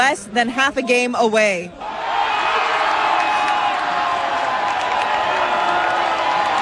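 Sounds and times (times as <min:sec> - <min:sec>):
speech: 0:00.0 - 0:01.9
fan crowd cheering after a goal: 0:01.8 - 0:06.5.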